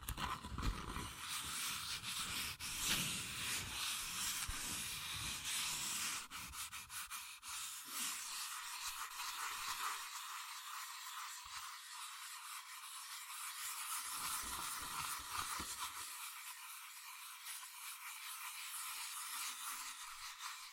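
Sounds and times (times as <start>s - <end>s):
fast scratching and tracing on cardboard and paper: 0.0s - 20.7s.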